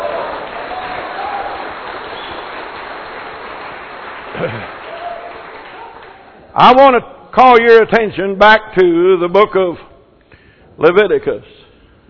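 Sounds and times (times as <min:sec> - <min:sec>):
audience clapping: 0:00.0 - 0:06.4
speech: 0:04.4 - 0:04.8, 0:06.6 - 0:09.9, 0:10.8 - 0:11.5.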